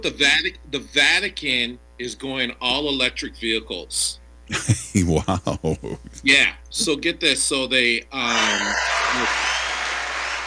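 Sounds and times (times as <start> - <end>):
speech: 0.0 - 9.5
laughter: 4.5 - 6.3
cheering crowd sound effect played on a radio show: 8.3 - 10.4.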